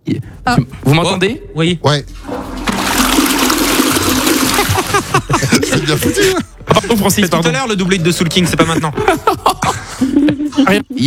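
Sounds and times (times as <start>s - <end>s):
speech: 0.5s - 2.2s, 5.9s - 11.0s
toilet flushing: 2.0s - 6.4s
laughter: 3.8s - 11.0s.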